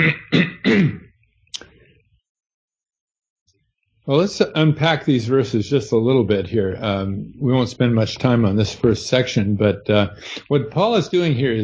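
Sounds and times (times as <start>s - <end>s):
speech: 0.0s - 0.3s, 4.1s - 11.6s
throat clearing during a Bible teaching: 0.0s - 1.1s.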